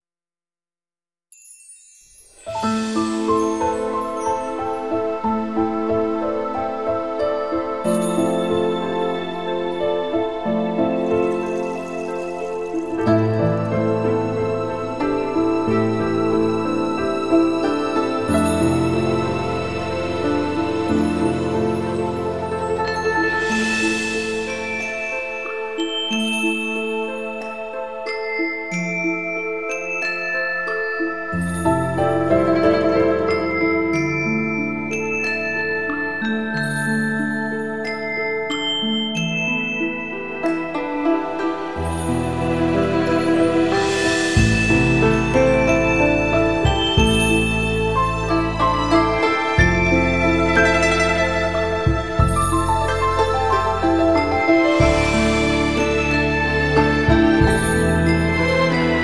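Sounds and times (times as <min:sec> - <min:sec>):
music: 0:01.3 - 0:59.0.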